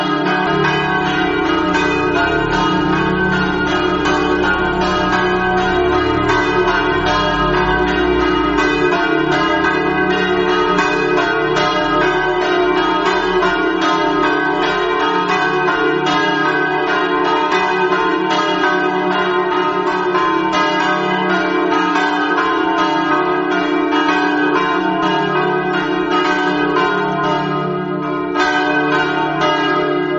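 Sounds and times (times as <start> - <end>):
bells ringing in Precenicco: 0.0 - 30.1.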